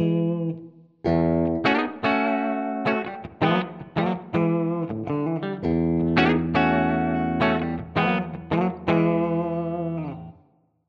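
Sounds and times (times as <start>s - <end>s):
ESP SC 20 electric guitar clean tone position 2 5: 0.0s - 10.5s.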